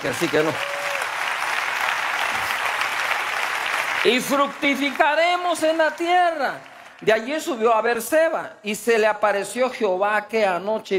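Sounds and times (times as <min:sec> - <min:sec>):
speech: 0:00.0 - 0:00.8, 0:04.0 - 0:10.9
applause from a group: 0:00.0 - 0:07.6.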